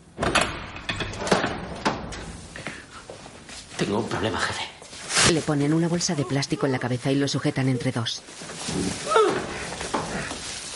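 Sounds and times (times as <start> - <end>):
prison cell door mechanism clunking and rattling as it opens: 0.0 - 2.5
speech: 3.8 - 9.5.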